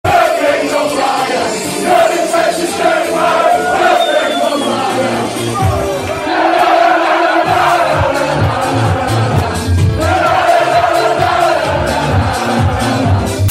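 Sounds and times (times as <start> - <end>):
football crowd chanting: 0.1 - 13.4.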